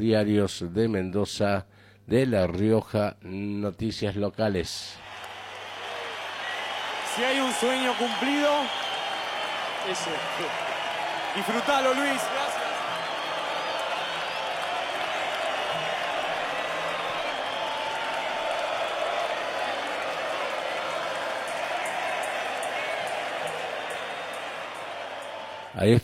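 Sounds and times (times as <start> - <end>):
speech: 0.0 - 5.1, 7.2 - 8.8, 9.8 - 10.6, 11.4 - 12.4, 25.8 - 26.0
audience applause: 5.0 - 25.8.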